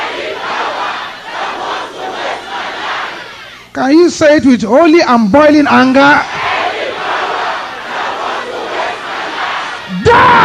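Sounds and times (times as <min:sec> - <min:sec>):
large audience shouting: 0:00.0 - 0:03.6, 0:06.2 - 0:10.4
speech: 0:03.8 - 0:06.4.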